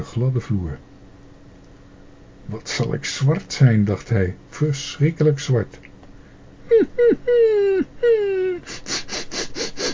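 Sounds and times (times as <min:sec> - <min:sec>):
speech: 0:00.1 - 0:01.0, 0:02.5 - 0:05.9, 0:06.7 - 0:08.8
dog whimpering: 0:06.7 - 0:09.9.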